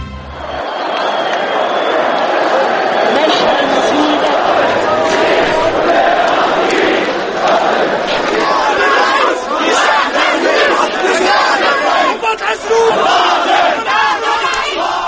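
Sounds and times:
Egyptian protesters shouting and chanting in Tahrir Square, Cairo: 0:00.2 - 0:15.0.

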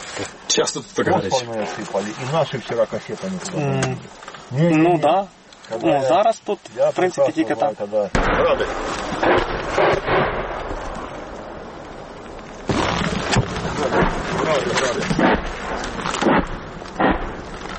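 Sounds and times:
speech: 0:00.2 - 0:09.9
Grad multiple rocket launchers firing: 0:08.1 - 0:17.7
wind-like roar: 0:08.2 - 0:17.7.

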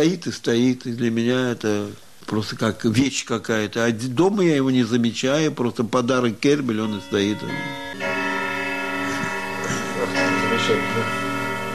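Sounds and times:
speech: 0:00.0 - 0:08.1
striking floor clock chiming: 0:06.9 - 0:11.7.

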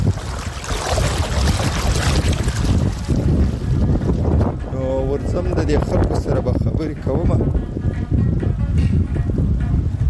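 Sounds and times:
clear flowing water: 0:00.0 - 0:04.4
wind buffeting: 0:00.0 - 0:10.0.

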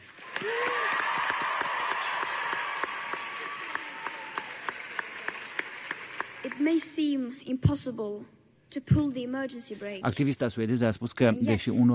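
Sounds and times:
crowd of students applauding: 0:00.0 - 0:07.0
students whooping and shouting: 0:00.2 - 0:04.8
speech: 0:06.6 - 0:11.9.

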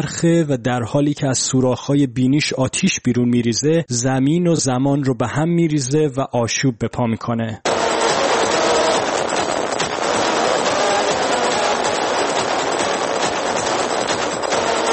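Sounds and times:
speech: 0:00.0 - 0:07.8
song playing: 0:07.7 - 0:14.9.

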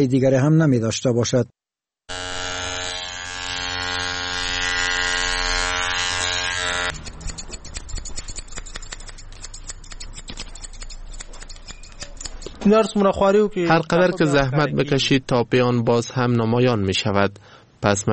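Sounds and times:
speech: 0:00.0 - 0:01.6, 0:12.7 - 0:18.1
electric hair clippers buzzing: 0:02.1 - 0:07.6
scissors cutting hair in a barbershop: 0:06.8 - 0:12.7.

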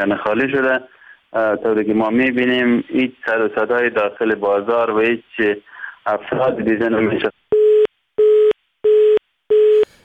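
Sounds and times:
speech: 0:00.0 - 0:07.3
telephone busy tone after call disconnects: 0:07.6 - 0:09.9.

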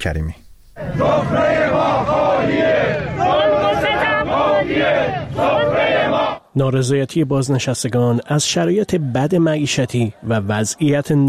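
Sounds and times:
speech: 0:00.0 - 0:03.4, 0:04.6 - 0:11.2
large protesting crowd chanting in unison: 0:00.8 - 0:06.5, 0:08.6 - 0:11.2.

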